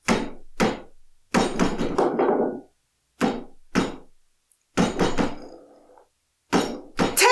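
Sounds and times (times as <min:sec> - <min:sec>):
legs swinging and knocking against a chair: 0:00.0 - 0:04.2, 0:04.8 - 0:07.2.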